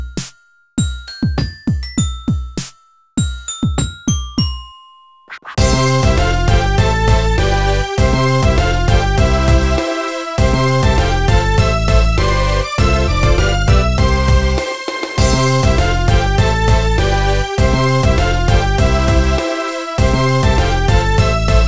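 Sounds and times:
music: 0.0 - 21.6.

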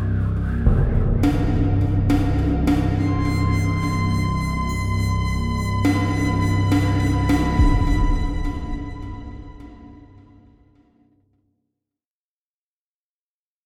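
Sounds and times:
grand ambience: 0.0 - 10.5.

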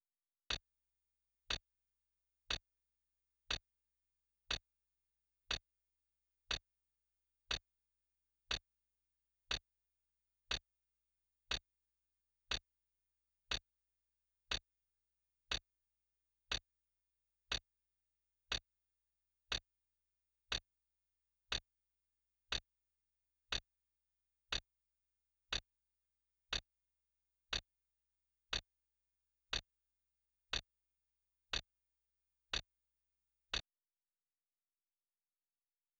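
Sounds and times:
clock: 0.5 - 0.7, 1.5 - 1.7, 2.5 - 2.7, 3.4 - 3.7, 4.5 - 4.7, 5.4 - 5.7, 6.5 - 6.7, 7.5 - 7.7, 8.5 - 8.7, 9.5 - 9.7, 10.5 - 10.7, 11.5 - 11.7, 12.5 - 12.7, 13.5 - 13.7, 14.5 - 14.7, 15.5 - 15.7, 16.5 - 16.7, 17.5 - 17.7, 18.5 - 18.7, 19.5 - 19.7, 20.5 - 20.7, 25.5 - 25.7, 27.5 - 27.7, 28.5 - 28.7, 29.5 - 29.7, 30.5 - 30.7, 31.5 - 31.7, 32.5 - 32.8.

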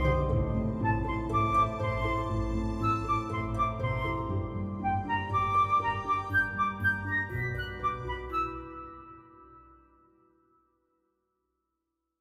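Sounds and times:
march music: 0.0 - 9.0.

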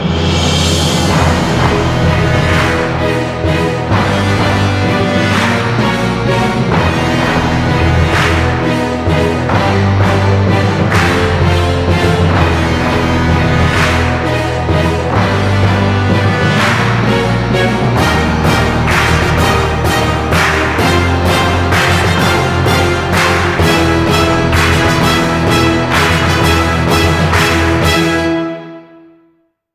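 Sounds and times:
victory jingle: 0.2 - 28.8.

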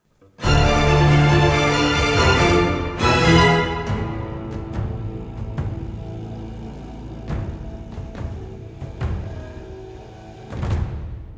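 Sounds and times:
battle music: 0.4 - 9.2.

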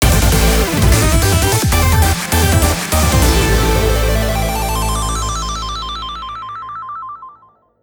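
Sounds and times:
battle victory background music: 0.0 - 5.6.

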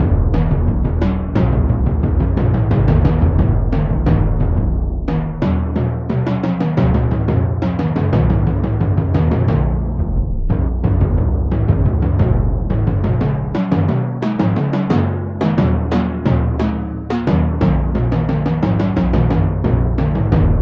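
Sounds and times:
drum: 0.0 - 20.5.

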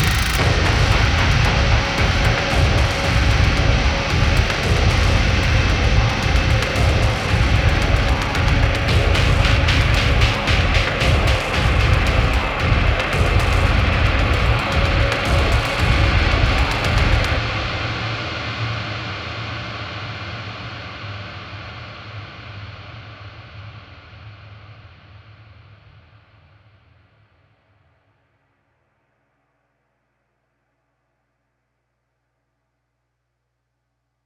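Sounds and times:
metal hell ambient drone: 0.0 - 19.0.

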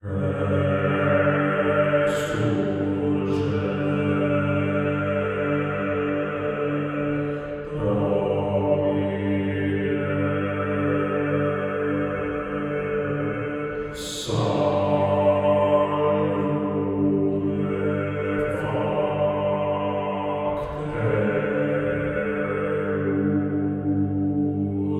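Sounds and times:
choir singing: 0.0 - 24.9.

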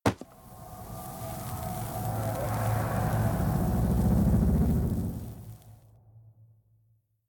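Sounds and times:
ritual book burning: 0.0 - 5.8.

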